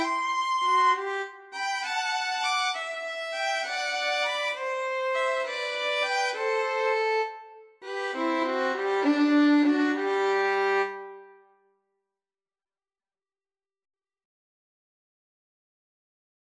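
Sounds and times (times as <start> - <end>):
violin trio playing a pastorale: 0.0 - 11.2.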